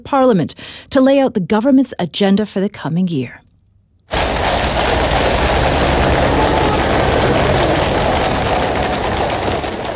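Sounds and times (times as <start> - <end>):
speech: 0.0 - 3.4
horse's hooves in London: 4.1 - 9.9.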